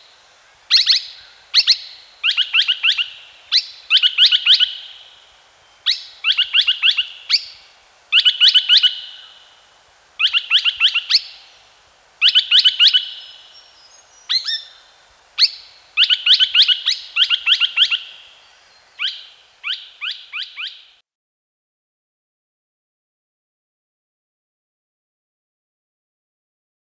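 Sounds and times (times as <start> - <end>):
hiss: 0.0 - 21.0
Australian logrunner chirping: 0.7 - 9.5, 10.2 - 11.6, 12.2 - 21.0.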